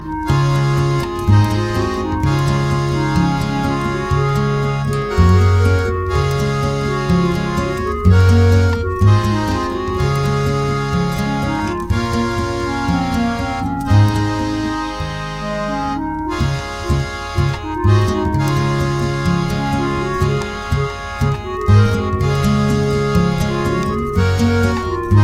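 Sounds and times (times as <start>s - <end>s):
instrumental music: 0.0s - 25.2s.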